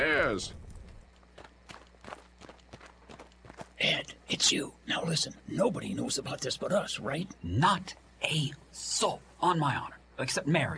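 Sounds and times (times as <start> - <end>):
speech: 0.0 - 0.6, 3.8 - 10.7
low constant hum: 0.0 - 10.7
two men's footsteps hurrying through deserted streets in a radio drama: 0.6 - 4.1.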